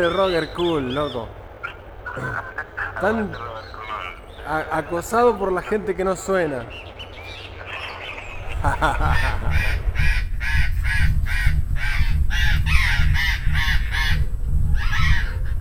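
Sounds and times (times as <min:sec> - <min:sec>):
speech: 0:00.0 - 0:01.4, 0:02.1 - 0:03.8, 0:04.5 - 0:07.0, 0:08.6 - 0:09.9
laughter: 0:00.0 - 0:10.1
flock of parrots squawking while flying past: 0:00.0 - 0:15.5.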